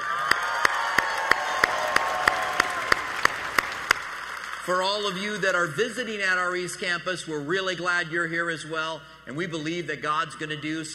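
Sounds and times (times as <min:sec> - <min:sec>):
church congregation applauding and cheering to welcome its East Campus: 0:00.0 - 0:06.2
speech: 0:04.7 - 0:10.9.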